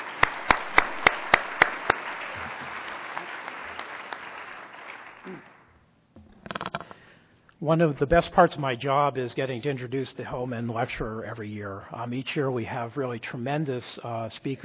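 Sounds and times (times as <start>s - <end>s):
audience applause welcoming a speaker at a lecture: 0.0s - 5.6s
speech: 7.6s - 14.6s.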